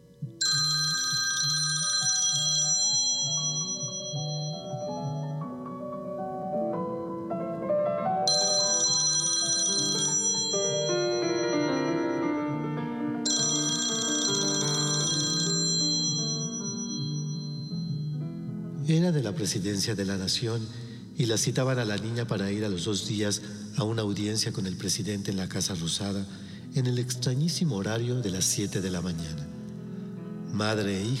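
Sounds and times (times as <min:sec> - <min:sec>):
music: 0:00.0 - 0:31.1
old-style telephone bell ringing in a house in Buenos Aires: 0:00.4 - 0:05.4, 0:08.3 - 0:18.2
speech: 0:18.9 - 0:29.5, 0:30.5 - 0:31.1.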